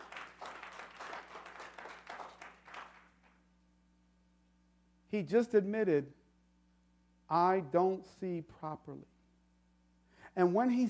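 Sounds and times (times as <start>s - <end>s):
audience applauding: 0.0s - 3.4s
low hum: 0.0s - 10.8s
speech: 5.1s - 6.2s, 7.3s - 9.1s, 10.4s - 10.8s.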